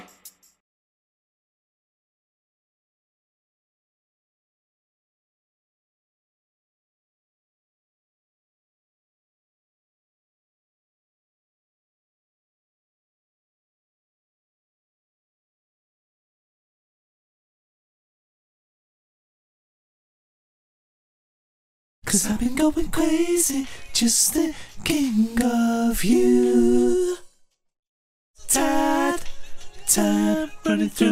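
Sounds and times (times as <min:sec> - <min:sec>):
person singing: 0:22.1 - 0:27.3, 0:28.4 - 0:31.0.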